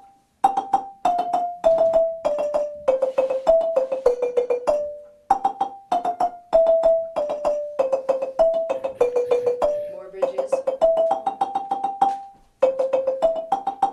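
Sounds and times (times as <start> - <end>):
lead marimba rolling: 0.0 - 13.9.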